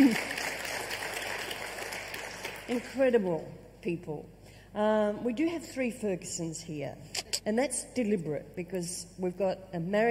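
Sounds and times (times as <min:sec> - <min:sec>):
audience clapping: 0:00.0 - 0:03.0
speech: 0:02.7 - 0:10.0.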